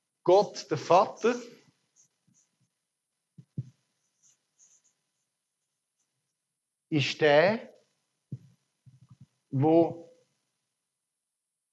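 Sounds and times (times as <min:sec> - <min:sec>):
speech: 0:00.2 - 0:01.6, 0:06.9 - 0:07.7, 0:09.5 - 0:10.1
person writing by hand with faint scratching strokes: 0:01.9 - 0:02.7, 0:03.4 - 0:06.1.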